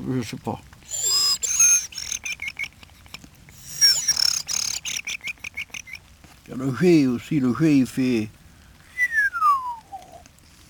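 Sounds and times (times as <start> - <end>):
speech: 0.0 - 1.0, 6.5 - 8.4
person whistling an imitation of a thrush song: 0.9 - 6.0, 8.9 - 10.2.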